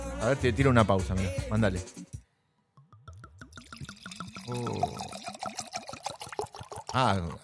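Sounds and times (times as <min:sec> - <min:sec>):
speech: 0:00.2 - 0:02.2, 0:04.5 - 0:05.2, 0:06.9 - 0:07.4
drink pouring into a glass: 0:02.8 - 0:07.4.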